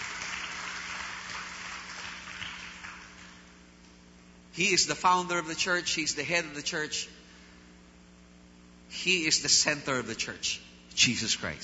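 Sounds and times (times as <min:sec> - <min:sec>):
church congregation applauding during a sermon: 0:00.0 - 0:03.5
speech: 0:04.6 - 0:07.2, 0:09.0 - 0:11.6.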